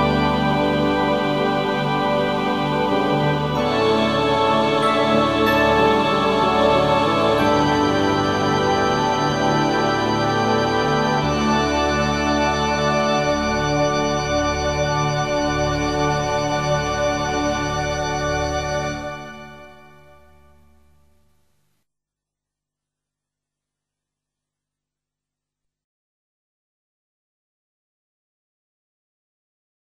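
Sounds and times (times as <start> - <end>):
violin: 0.0 - 20.2.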